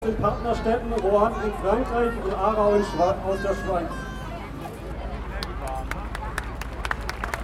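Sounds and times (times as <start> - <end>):
speech: 0.1 - 4.1
audience hand claps: 5.4 - 7.4.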